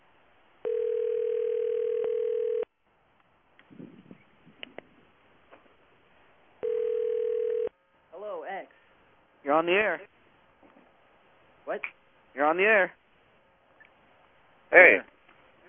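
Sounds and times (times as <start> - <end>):
telephone ringing down the line of a radio call-in show: 0.6 - 2.7, 6.6 - 7.7
speech: 9.6 - 10.1, 11.7 - 13.0, 14.7 - 15.1.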